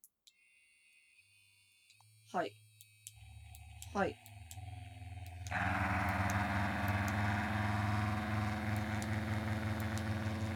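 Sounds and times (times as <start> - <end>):
speech: 2.3 - 2.6, 3.9 - 4.3, 5.5 - 6.0
Aotara vibrating toy motor buzzing during sound check: 3.3 - 10.5.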